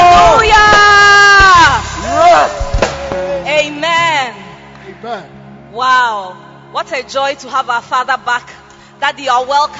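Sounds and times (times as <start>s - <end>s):
congregation shouting praise to Jesus: 0.0s - 4.3s
speech: 6.8s - 9.7s.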